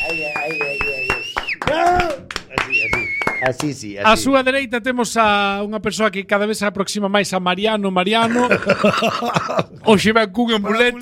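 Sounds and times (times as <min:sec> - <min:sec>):
steady high-pitched whistle: 0:00.0 - 0:01.6, 0:02.7 - 0:03.5
hand claps: 0:00.0 - 0:03.8
voices shouting and cheering: 0:00.0 - 0:04.4
speech: 0:03.4 - 0:11.0
laughter: 0:08.2 - 0:09.9.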